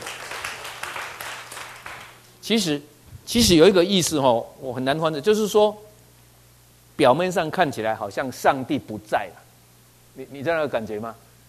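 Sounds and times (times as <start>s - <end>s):
audience clapping hands: 0.0s - 2.2s
speech: 2.5s - 5.9s, 7.0s - 9.4s, 10.2s - 11.2s.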